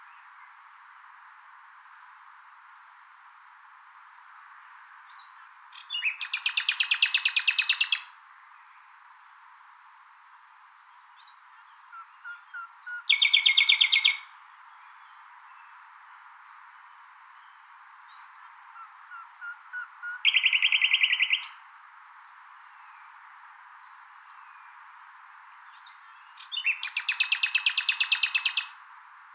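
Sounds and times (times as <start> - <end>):
common nightingale singing trills: 5.1 - 16.0, 16.9 - 21.7, 25.5 - 28.8.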